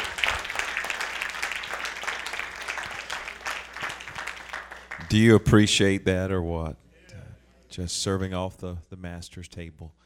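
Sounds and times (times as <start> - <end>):
crowd applause: 0.0 - 5.3
speech: 5.1 - 6.8, 7.8 - 10.0.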